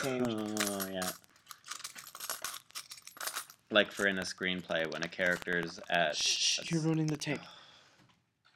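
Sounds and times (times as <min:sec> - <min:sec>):
speech: 0:00.0 - 0:01.2, 0:03.7 - 0:07.6
car keys jingling as Foley effect: 0:00.0 - 0:05.9.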